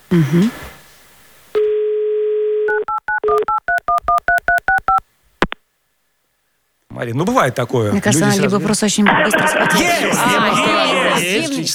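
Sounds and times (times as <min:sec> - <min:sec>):
speech: 0:00.1 - 0:00.6, 0:07.0 - 0:11.7
telephone dial tone: 0:01.6 - 0:05.0
laughter: 0:08.0 - 0:11.7.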